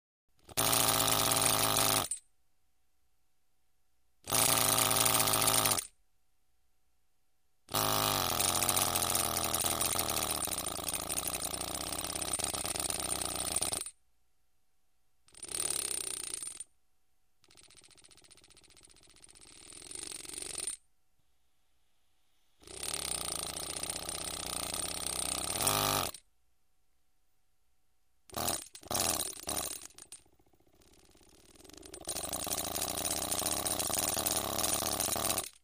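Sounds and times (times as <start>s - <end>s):
pneumatic rivet gun: 0.4s - 2.2s, 4.3s - 5.9s, 7.7s - 13.9s, 15.4s - 16.6s, 22.6s - 26.2s, 28.3s - 30.2s, 31.9s - 35.6s.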